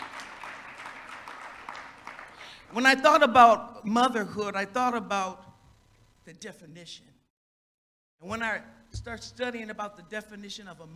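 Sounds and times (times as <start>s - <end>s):
audience clapping: 0.0s - 3.2s
speech: 2.7s - 5.4s, 6.3s - 7.2s, 8.2s - 10.9s.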